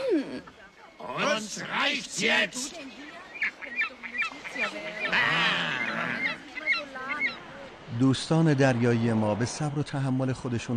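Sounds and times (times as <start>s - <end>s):
speech: 0.3s - 3.0s, 4.6s - 5.7s, 7.9s - 10.7s
seagull squawking: 3.3s - 7.5s.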